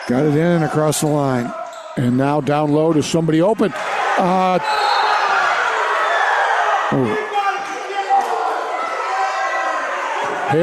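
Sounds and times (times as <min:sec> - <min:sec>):
speech: 0:00.1 - 0:05.0, 0:06.9 - 0:07.2
crowd screaming at basketball game: 0:03.6 - 0:10.6.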